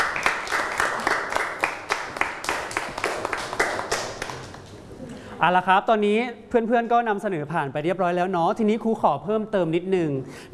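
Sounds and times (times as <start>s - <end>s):
classroom applause for student group three: 0.0s - 4.8s
speech: 5.4s - 10.5s.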